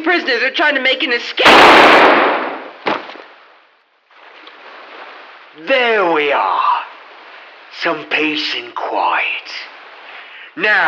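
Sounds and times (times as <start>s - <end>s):
speech: 0.1s - 2.4s, 5.6s - 6.8s, 7.8s - 9.7s, 10.6s - 10.8s
steady hiss of noise: 0.2s - 10.8s
gunshots: 1.4s - 3.4s.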